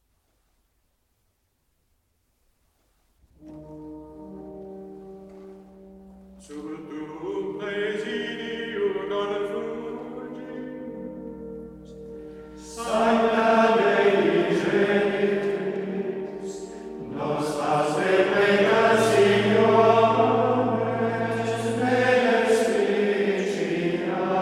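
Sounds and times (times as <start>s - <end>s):
Gregorian chant antiphon in monastic tone: 6.4s - 11.0s, 12.6s - 24.3s.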